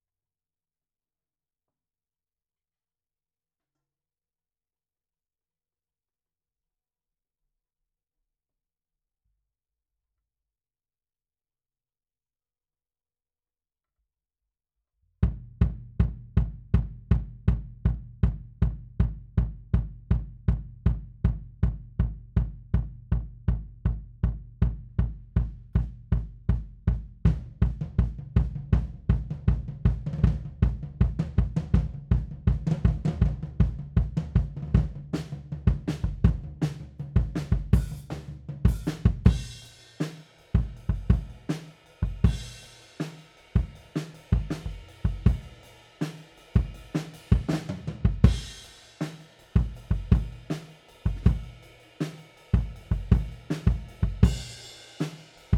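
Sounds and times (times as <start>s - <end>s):
kick drum beat: 15.2s - 39.6s, 40.6s - 42.8s, 43.6s - 45.6s, 46.6s - 48.8s, 49.6s - 51.6s, 52.6s - 54.6s.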